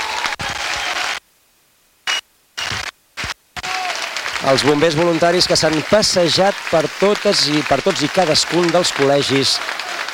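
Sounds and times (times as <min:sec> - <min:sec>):
loud crowd applause in town square: 0:00.0 - 0:01.2, 0:03.6 - 0:10.1
speech: 0:04.4 - 0:09.8.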